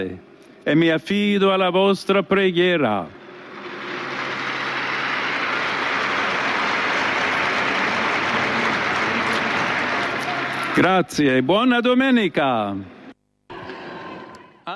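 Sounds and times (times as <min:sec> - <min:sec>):
speech: 0:00.0 - 0:03.2, 0:10.8 - 0:12.9
large crowd applauding outdoors: 0:03.2 - 0:11.4.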